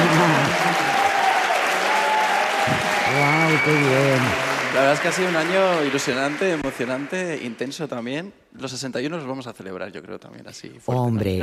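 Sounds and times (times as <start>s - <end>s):
live audience applauding loudly: 0.0s - 8.2s
speech: 3.5s - 11.4s.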